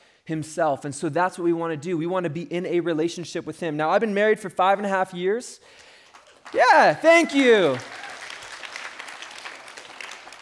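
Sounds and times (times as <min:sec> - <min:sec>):
speech: 0:00.3 - 0:05.9, 0:06.5 - 0:08.0
audience clapping: 0:05.7 - 0:10.3.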